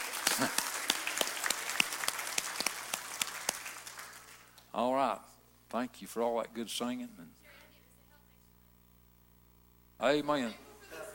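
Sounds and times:
crowd clapping: 0.0 - 4.7
speech: 0.4 - 0.6, 4.8 - 7.4, 10.0 - 10.6.

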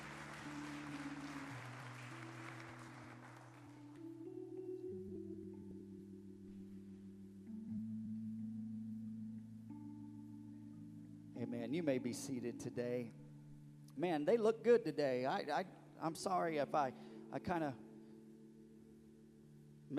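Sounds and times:
audience clapping: 0.0 - 4.0
sustained organ chords: 0.0 - 19.9
speech: 11.4 - 13.2, 14.0 - 17.8.

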